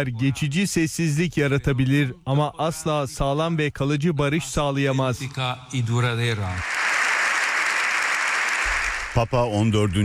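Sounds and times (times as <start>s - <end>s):
speech: 0.0s - 6.9s, 9.2s - 10.0s
standing ovation applause in the Spanish parliament for Pope Leo XIV: 6.4s - 10.0s.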